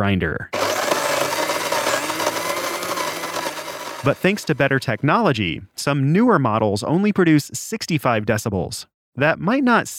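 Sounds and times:
speech: 0.0 - 0.6, 4.0 - 9.9
vacuum cleaner running: 0.6 - 4.7.

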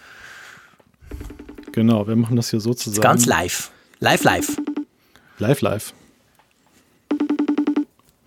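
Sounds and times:
telephone ringing tone beeps: 1.1 - 1.8, 3.0 - 3.4, 4.1 - 4.9, 7.1 - 7.9
speech: 1.8 - 4.7, 5.4 - 6.0.

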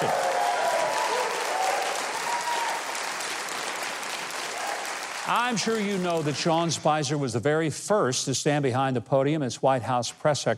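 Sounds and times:
audience applause for a band: 0.0 - 6.8
speech: 5.3 - 10.5.

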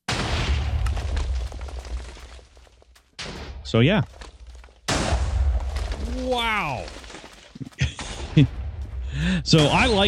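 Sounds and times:
automatic cannon firing and hitting in the Minecraft video game: 0.0 - 2.2, 4.8 - 7.1, 7.8 - 10.0
speech: 3.7 - 4.2, 6.2 - 7.0, 8.4 - 8.6, 9.2 - 10.0.

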